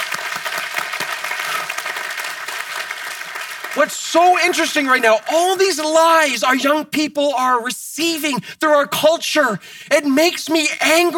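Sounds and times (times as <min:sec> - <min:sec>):
audience applause: 0:00.0 - 0:06.4
speech: 0:03.8 - 0:11.1.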